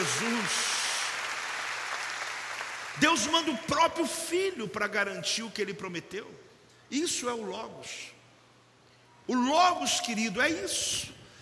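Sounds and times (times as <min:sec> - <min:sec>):
audience applauding: 0:00.0 - 0:03.5
speech: 0:03.0 - 0:08.2, 0:09.3 - 0:11.2.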